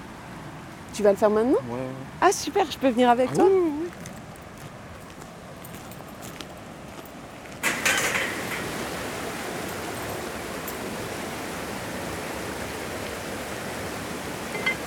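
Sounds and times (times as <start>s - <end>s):
speech: 1.0s - 4.0s
water rushing through an irrigation valve: 7.6s - 14.8s.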